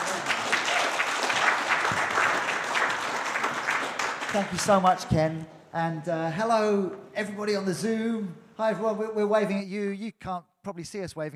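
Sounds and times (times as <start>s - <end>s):
audience applause: 0.0s - 5.0s
speech: 4.3s - 11.3s.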